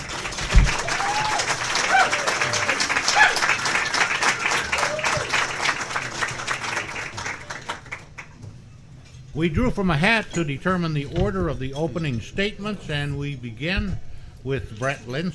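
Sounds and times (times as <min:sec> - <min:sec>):
audience at a political debate whooping: 0:00.0 - 0:05.9
audience at a political debate clapping: 0:00.0 - 0:08.4
speech: 0:09.4 - 0:15.3.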